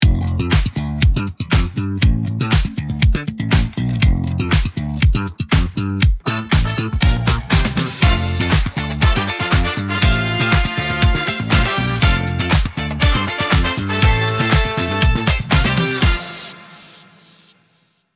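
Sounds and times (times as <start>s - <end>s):
music: 0.0s - 18.0s.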